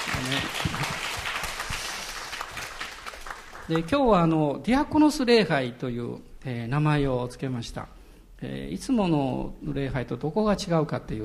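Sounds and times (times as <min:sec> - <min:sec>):
audience applauding: 0:00.0 - 0:04.0
speech: 0:00.3 - 0:01.0, 0:03.7 - 0:11.2.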